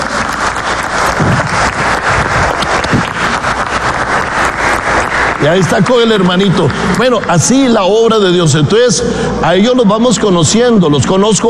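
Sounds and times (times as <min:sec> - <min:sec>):
audience applause: 0:00.0 - 0:08.1
speech: 0:05.4 - 0:11.4.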